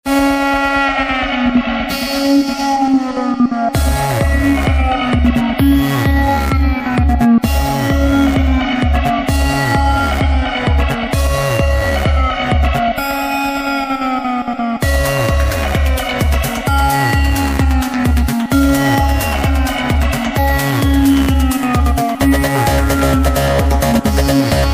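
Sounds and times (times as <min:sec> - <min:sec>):
electro glide sine cut: 0:00.1 - 0:24.7.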